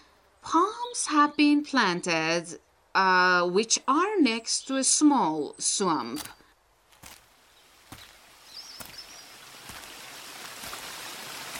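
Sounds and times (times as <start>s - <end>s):
speech: 1.0s - 6.4s
waterfall: 7.0s - 11.5s.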